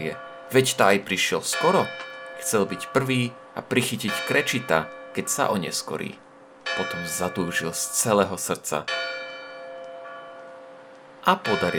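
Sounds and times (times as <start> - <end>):
speech: 0.0 - 9.1, 11.2 - 11.7
clock bell striking the hour: 0.0 - 11.7.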